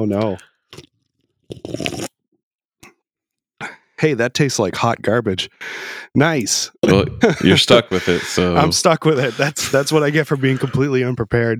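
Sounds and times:
speech: 0.0 - 0.9, 1.5 - 2.0, 4.0 - 11.5
biting into a ginger snap cookie: 1.5 - 2.1
laughter: 6.8 - 11.3.

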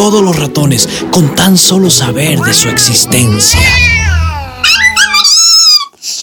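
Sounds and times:
speech: 0.0 - 4.3
cat meowing: 2.4 - 5.2.

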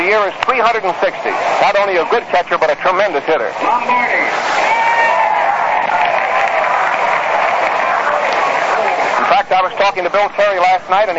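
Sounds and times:
speech: 0.0 - 4.8, 9.5 - 11.1
crowd applauding batter: 4.5 - 9.8.

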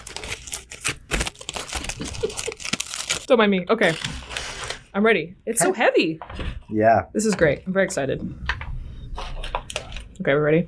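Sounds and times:
big burrito wrapper crinkling as it is unwrapped: 0.0 - 4.9
speech: 3.3 - 4.2, 5.0 - 8.5, 10.2 - 10.6.

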